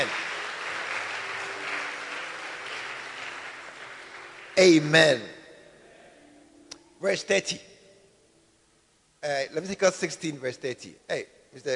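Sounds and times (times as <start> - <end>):
crowd clapping: 0.0 - 5.3
speech: 4.6 - 5.3, 7.0 - 7.7, 9.2 - 11.7.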